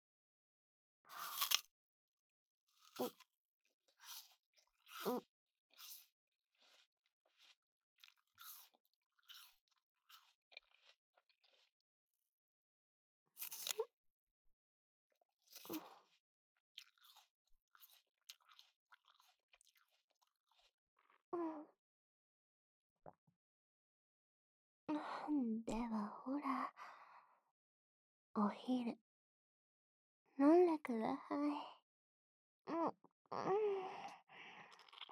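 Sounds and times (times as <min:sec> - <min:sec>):
crunching and chewing of juicy fruit: 0:01.1 - 0:01.7, 0:02.7 - 0:11.8, 0:13.4 - 0:13.9, 0:15.4 - 0:21.2, 0:34.0 - 0:35.1
speech: 0:03.0 - 0:03.2, 0:05.0 - 0:05.3, 0:25.6 - 0:26.9, 0:28.4 - 0:29.1, 0:30.4 - 0:31.7, 0:32.7 - 0:34.0.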